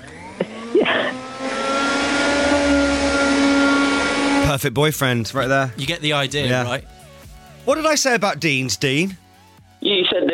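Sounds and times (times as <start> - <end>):
vacuum cleaner hoovering up sawdust: 0.0 - 4.4
speech: 4.6 - 7.0, 7.6 - 9.2, 9.8 - 10.3.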